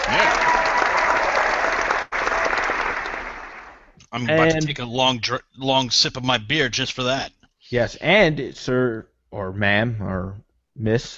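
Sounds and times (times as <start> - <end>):
round of applause: 0.0 - 4.0
speech: 4.2 - 11.1.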